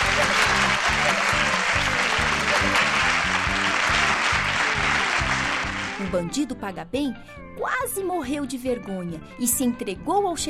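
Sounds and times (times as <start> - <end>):
crowd applauding: 0.0 - 6.2
speech: 6.1 - 10.4.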